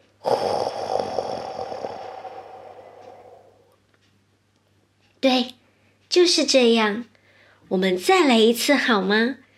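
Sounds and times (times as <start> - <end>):
deep breath during a children's guided meditation: 0.2 - 3.8, 7.2 - 7.6
speech: 5.2 - 5.6, 6.2 - 7.1, 7.7 - 9.4.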